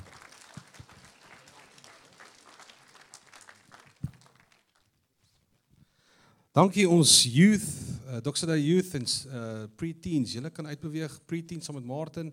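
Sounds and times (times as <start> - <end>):
audience applause, hand clapping: 0.0 - 4.8
speech: 6.6 - 12.3.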